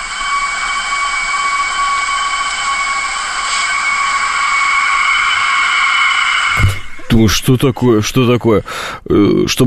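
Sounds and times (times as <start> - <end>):
wind whistling through an aluminium balcony door: 0.0 - 7.6
speech: 7.2 - 9.6.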